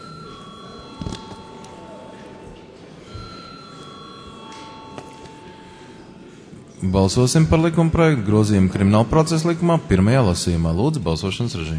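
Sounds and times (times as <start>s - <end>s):
parliament chamber bell ringing before a vote: 0.0s - 6.4s
murmur of voices: 0.0s - 11.7s
speech: 6.8s - 11.7s.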